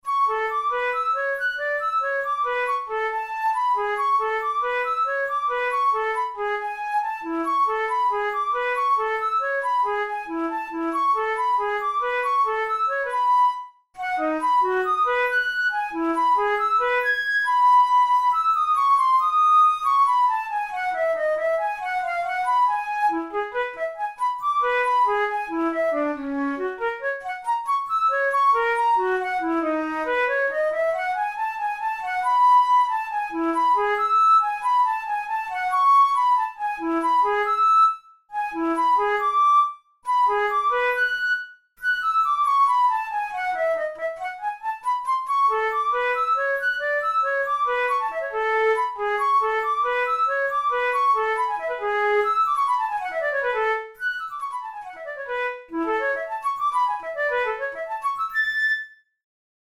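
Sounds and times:
studies for the Boehm flute: 0.0s - 59.1s.

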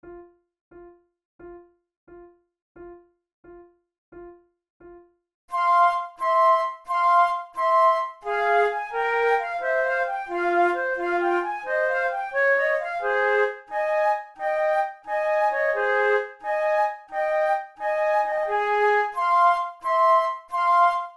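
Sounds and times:
flute sonata gigue: 5.5s - 21.1s.

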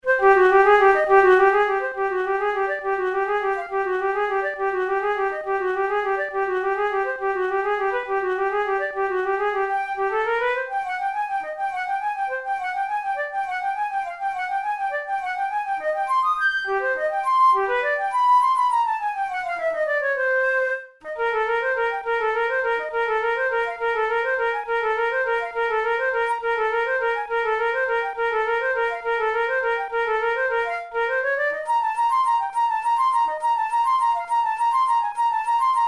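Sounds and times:
studies for the Boehm flute: 0.0s - 35.8s.

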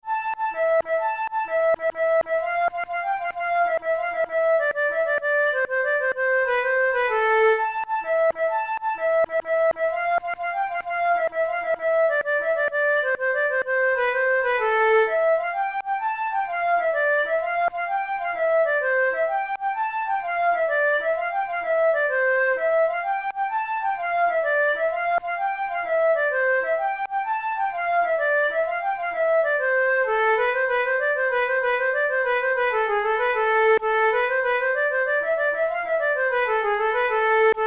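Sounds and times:
flute playing a tarantella: 0.0s - 37.6s.

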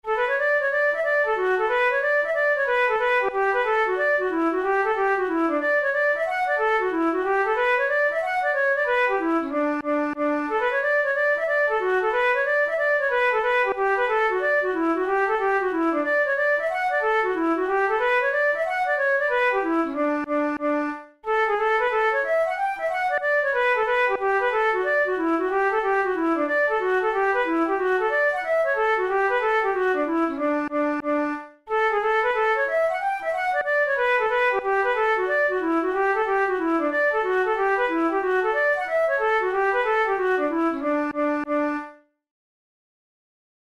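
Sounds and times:
hornpipe flute tunes: 0.0s - 42.0s.

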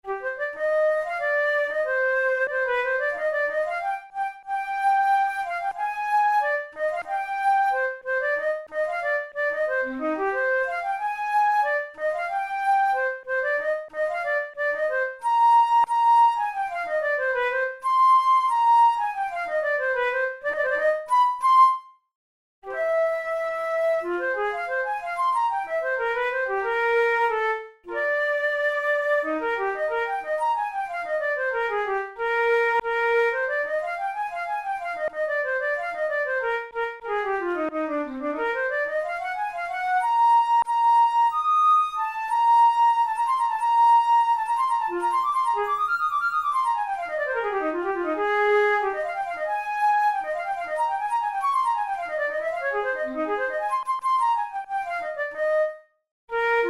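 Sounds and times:
flute playing a rondo: 0.0s - 22.0s, 22.6s - 56.6s.

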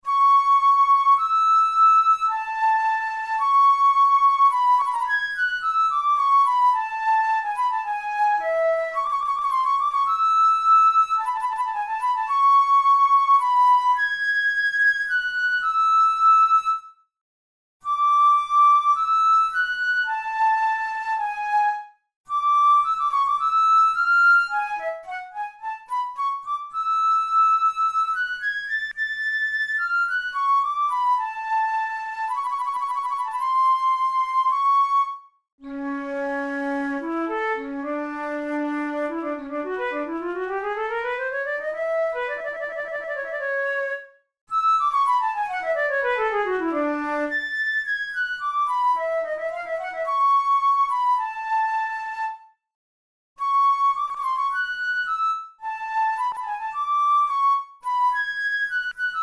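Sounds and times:
studies for the Boehm flute: 0.0s - 17.1s, 17.8s - 52.7s, 53.4s - 59.2s.

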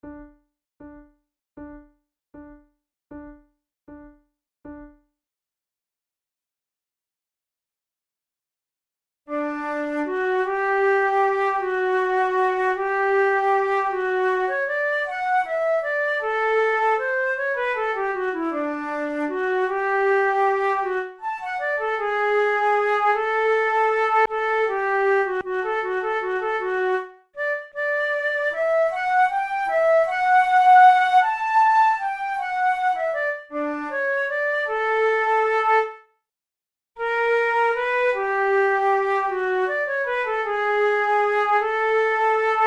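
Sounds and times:
flute method exercise: 9.3s - 36.1s, 37.0s - 42.6s.

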